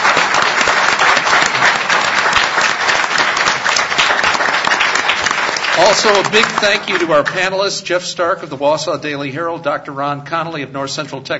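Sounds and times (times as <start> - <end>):
crowd applause: 0.0 - 7.6
speech: 5.8 - 11.3.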